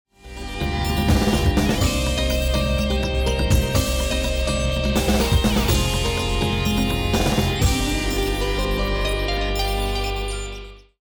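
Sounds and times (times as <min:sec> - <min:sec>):
ten second bomb timer countdown: 0:00.6 - 0:10.2.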